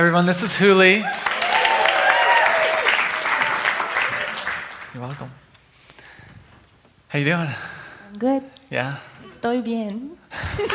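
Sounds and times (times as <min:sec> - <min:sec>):
speech: 0:00.0 - 0:01.4, 0:05.0 - 0:05.4, 0:07.1 - 0:10.7
crowd noise: 0:00.0 - 0:05.4
audience applause for performers: 0:00.5 - 0:05.4.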